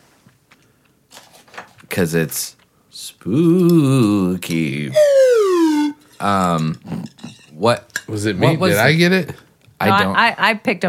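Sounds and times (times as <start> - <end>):
speech: 2.0 - 2.6, 3.2 - 5.1, 6.2 - 10.8
car alarm going off: 5.0 - 6.0.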